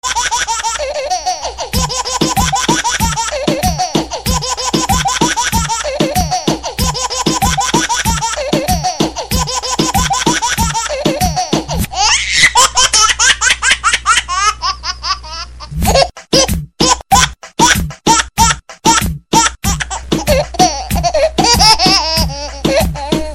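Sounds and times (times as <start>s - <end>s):
baby laughing: 0.0s - 23.3s
music: 1.4s - 12.0s, 15.7s - 23.3s.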